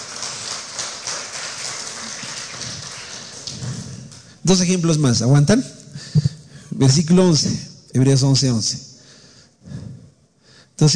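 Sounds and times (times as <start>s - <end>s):
audience applause: 0.0s - 4.2s
speech: 4.5s - 5.8s, 6.8s - 8.9s, 10.8s - 10.9s.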